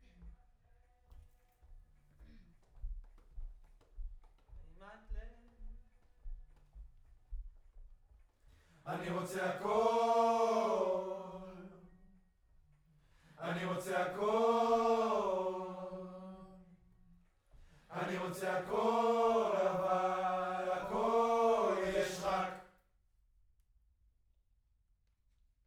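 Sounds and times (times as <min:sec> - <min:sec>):
distant choir: 0:08.8 - 0:12.0, 0:13.3 - 0:16.7, 0:17.8 - 0:22.8.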